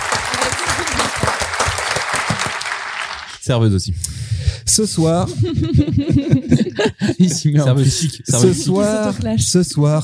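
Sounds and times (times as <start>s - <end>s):
laughter: 0.0s - 1.6s, 5.0s - 9.3s
audience applause: 0.0s - 3.4s
speech: 3.5s - 10.0s.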